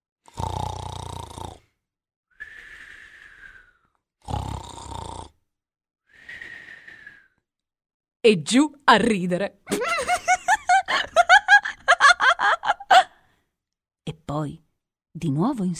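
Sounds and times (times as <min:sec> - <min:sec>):
man snoring with whistling wheeze: 0:00.2 - 0:01.8, 0:04.2 - 0:05.4
speech: 0:08.2 - 0:10.1, 0:14.4 - 0:15.7
laughter: 0:09.7 - 0:13.2.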